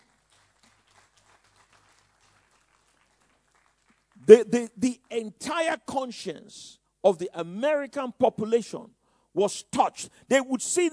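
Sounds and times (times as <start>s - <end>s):
audience clapping: 0.0s - 4.7s
speech: 4.3s - 10.9s.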